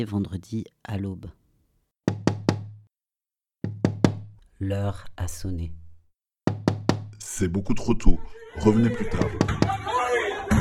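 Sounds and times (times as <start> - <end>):
speech: 0.0 - 1.4, 4.6 - 5.8, 7.4 - 9.8
firm resonant hollow knocking: 2.1 - 2.9, 3.6 - 4.4, 6.5 - 7.2.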